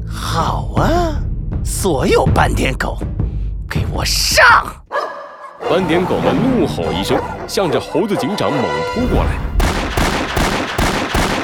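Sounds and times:
speech: 0.4s - 1.1s, 1.7s - 3.2s, 3.9s - 4.8s, 5.7s - 9.5s
gunshots: 9.6s - 11.4s.

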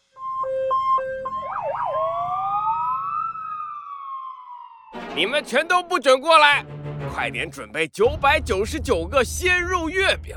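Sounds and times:
police car siren: 0.0s - 6.0s
speech: 5.2s - 10.3s.

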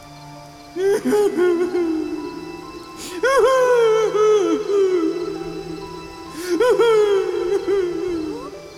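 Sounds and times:
person crying: 0.8s - 8.6s.

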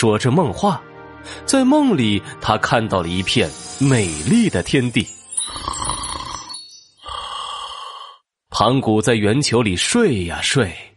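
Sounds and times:
speech: 0.0s - 5.8s, 8.6s - 10.9s
snoring: 5.5s - 8.2s.

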